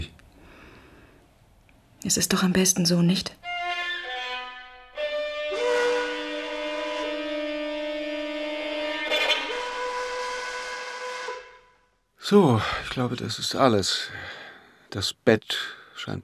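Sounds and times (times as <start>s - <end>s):
speech: 2.0s - 3.5s, 12.3s - 16.2s
steam train whistle: 3.4s - 11.9s.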